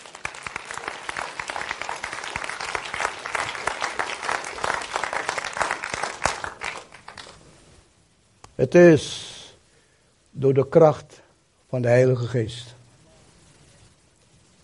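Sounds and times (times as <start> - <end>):
applause: 0.0 - 7.5
speech: 8.6 - 9.3, 10.4 - 12.8.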